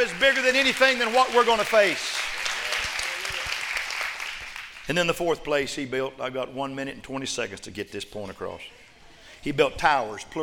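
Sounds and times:
speech: 0.0 - 2.2, 4.9 - 10.4
audience clapping: 0.0 - 5.2.

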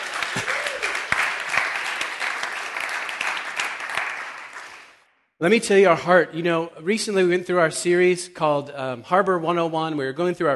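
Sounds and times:
audience applause: 0.0 - 5.0
speech: 5.4 - 10.5.

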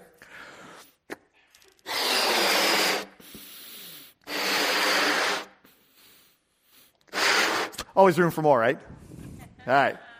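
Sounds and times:
person blowing up a balloon: 0.7 - 7.9
speech: 8.0 - 10.1.

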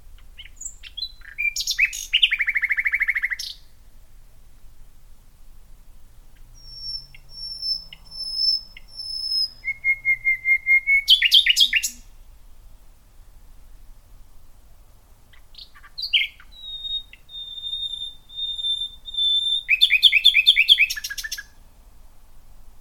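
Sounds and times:
Common Nightingale song: 0.2 - 3.7, 6.4 - 12.2, 15.3 - 21.7.

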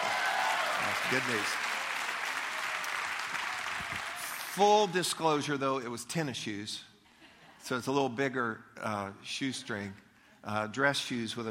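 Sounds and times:
hand clapping: 0.8 - 4.5
speech: 1.0 - 1.6, 4.6 - 6.9, 7.6 - 11.4.

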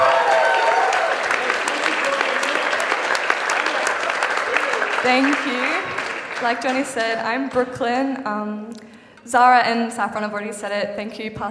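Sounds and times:
audience applause: 0.0 - 7.4
speech: 5.1 - 11.4.

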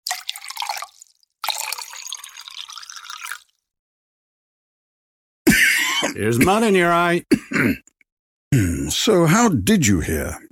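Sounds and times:
drink poured from a bottle into two mugs: 0.0 - 3.6
speech: 6.1 - 7.9, 8.5 - 10.5.

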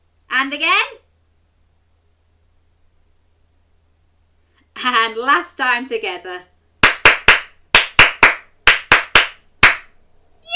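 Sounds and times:
speech: 0.4 - 1.0, 4.8 - 6.5
hands clapping in a rhythmic pattern: 6.8 - 10.0.

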